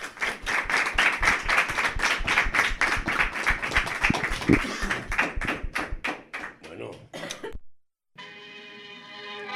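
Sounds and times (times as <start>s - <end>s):
warm group applause: 0.0s - 7.0s.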